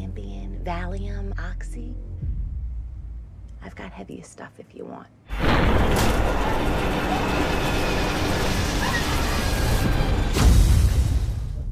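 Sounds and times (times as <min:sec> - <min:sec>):
speech: 0:00.6 - 0:02.1, 0:03.6 - 0:09.1
plane crash explosion: 0:05.3 - 0:11.6.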